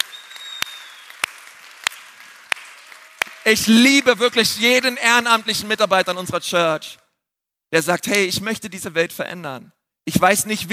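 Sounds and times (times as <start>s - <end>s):
audience applause: 0.0s - 6.3s
speech: 3.5s - 7.0s, 7.7s - 10.7s.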